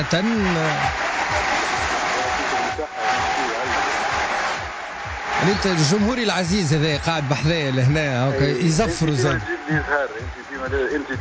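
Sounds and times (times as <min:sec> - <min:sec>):
speech: 0:00.0 - 0:01.9, 0:05.4 - 0:11.1
applause welcoming an award-winning filmmaker back from a festival: 0:00.0 - 0:11.1.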